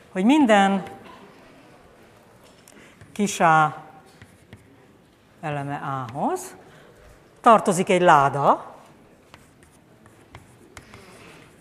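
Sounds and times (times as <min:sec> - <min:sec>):
speech: 0:00.2 - 0:01.0, 0:03.2 - 0:03.8, 0:05.4 - 0:06.6, 0:07.4 - 0:08.7
writing on a board during a lecture: 0:04.0 - 0:05.0, 0:09.1 - 0:11.6.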